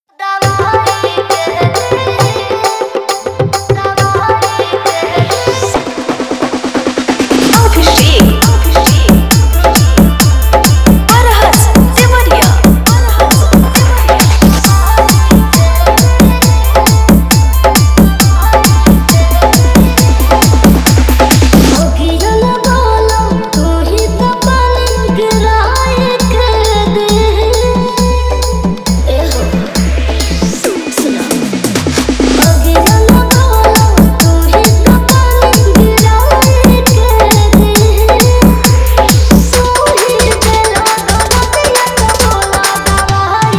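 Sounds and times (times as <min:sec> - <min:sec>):
dholki drumming mix: 0:00.4 - 0:43.5.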